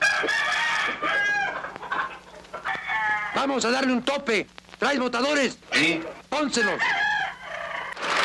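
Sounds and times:
rooster crowing: 0.0s - 3.5s, 6.5s - 8.1s
speech: 3.4s - 7.0s.

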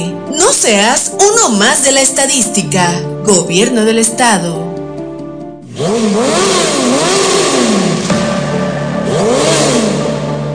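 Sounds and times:
speech: 0.0s - 4.8s, 5.8s - 6.7s
motorcycle engine revving: 5.6s - 10.5s.

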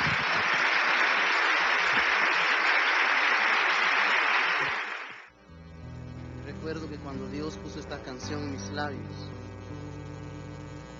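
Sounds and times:
audience applause: 0.0s - 5.3s
speech: 8.2s - 9.4s.

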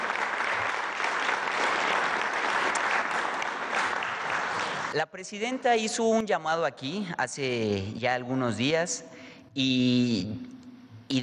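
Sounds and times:
audience applause: 0.0s - 4.9s
speech: 5.0s - 10.5s, 11.1s - 11.2s.

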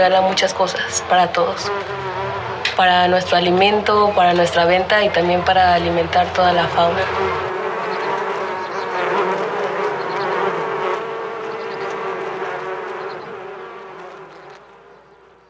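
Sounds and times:
speech: 0.0s - 7.5s
bees buzzing: 0.0s - 15.4s.

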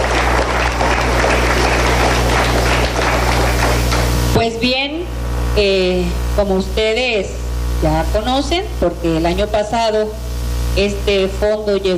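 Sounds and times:
audience applause: 0.0s - 4.4s
low constant hum: 0.0s - 11.9s
speech: 5.6s - 11.9s.

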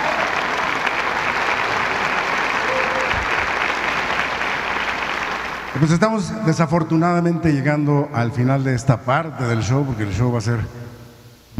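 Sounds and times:
large audience applause for jazz orchestra: 0.0s - 6.0s
speech: 5.8s - 10.8s.

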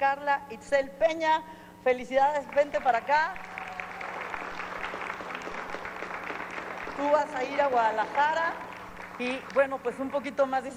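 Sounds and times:
speech: 0.0s - 3.5s, 7.0s - 10.7s
crowd applauding: 2.5s - 10.7s.

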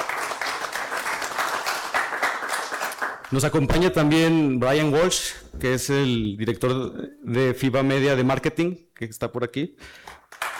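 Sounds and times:
audience applause: 0.0s - 3.4s
speech: 3.3s - 10.2s.

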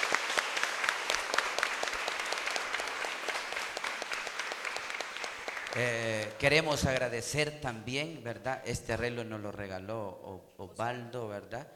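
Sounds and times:
audience applauding: 0.0s - 6.3s
speech: 5.8s - 11.7s.

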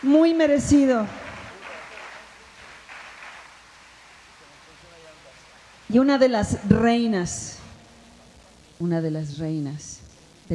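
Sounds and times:
speech: 0.0s - 1.2s, 5.9s - 7.6s, 8.8s - 10.5s
audience applause: 0.0s - 5.4s.

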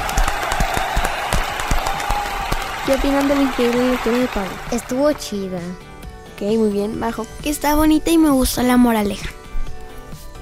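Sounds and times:
class clapping after a child reads a fable: 0.0s - 5.4s
speech: 2.9s - 9.4s.

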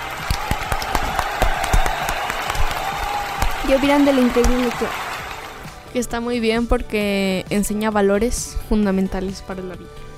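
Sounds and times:
audience applause: 0.0s - 5.6s
speech: 3.7s - 5.0s, 5.9s - 10.0s.

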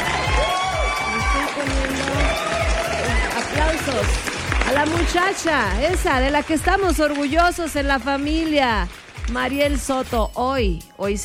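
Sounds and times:
applause sound effect played: 0.0s - 9.9s
speech: 4.1s - 11.2s.

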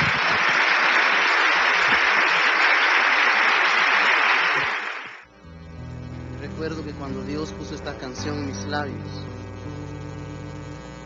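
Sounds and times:
audience applause: 0.0s - 5.3s
speech: 8.7s - 9.2s.

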